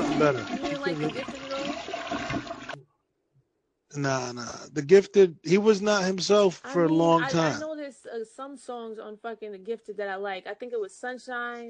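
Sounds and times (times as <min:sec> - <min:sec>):
laughter: 0:00.0 - 0:01.4, 0:04.0 - 0:07.6
toilet flush sound effect: 0:00.0 - 0:02.8
speech: 0:00.2 - 0:01.5, 0:03.9 - 0:11.6.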